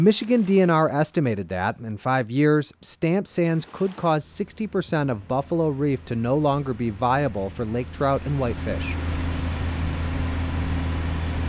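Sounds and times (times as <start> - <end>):
speech: 0.0 - 9.2
diesel dredging boat engine droning: 3.7 - 11.4.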